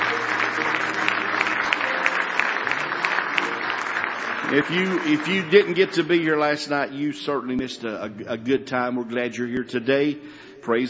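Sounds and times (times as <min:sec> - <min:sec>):
audience hand clapping: 0:00.0 - 0:06.9
speech: 0:04.5 - 0:10.8.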